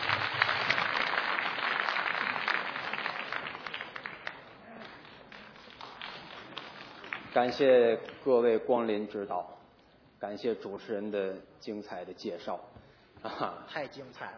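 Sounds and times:
audience clapping: 0:00.0 - 0:08.2
speech: 0:07.4 - 0:09.6, 0:10.2 - 0:14.3.

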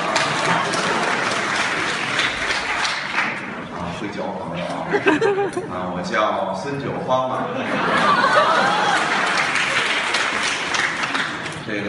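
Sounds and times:
audience applause: 0:00.0 - 0:03.5, 0:08.0 - 0:11.6
laughter: 0:04.7 - 0:05.9, 0:07.4 - 0:10.4
speech: 0:05.1 - 0:08.8, 0:11.7 - 0:11.8.

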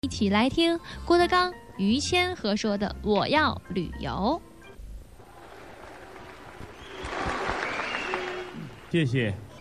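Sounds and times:
speech: 0:00.0 - 0:04.5, 0:08.9 - 0:09.5
audience applause: 0:05.2 - 0:09.2.

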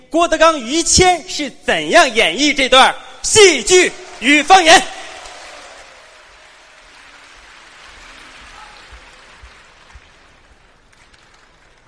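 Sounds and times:
speech: 0:00.1 - 0:04.9
audience applause: 0:03.7 - 0:11.8.

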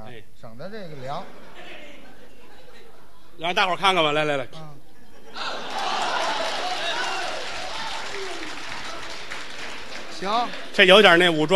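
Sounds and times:
speech: 0:00.4 - 0:01.6, 0:03.4 - 0:04.8, 0:10.2 - 0:11.5
laughter: 0:01.0 - 0:03.8, 0:04.8 - 0:11.5
audience applause at a live Chinese comedy performance: 0:05.4 - 0:11.5.

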